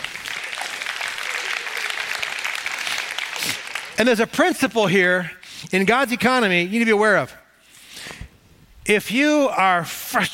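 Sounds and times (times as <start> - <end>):
audience applause: 0.0 - 4.0
speech: 4.0 - 7.4, 8.8 - 10.3.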